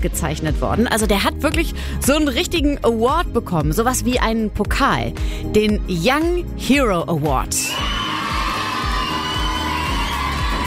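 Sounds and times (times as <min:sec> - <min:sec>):
speech: 0:00.0 - 0:08.0
applause: 0:07.7 - 0:10.6.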